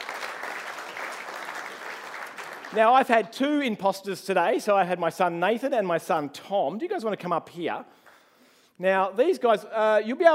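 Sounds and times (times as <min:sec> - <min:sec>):
audience applause: 0:00.0 - 0:02.9
speech: 0:02.7 - 0:08.0, 0:08.8 - 0:10.3.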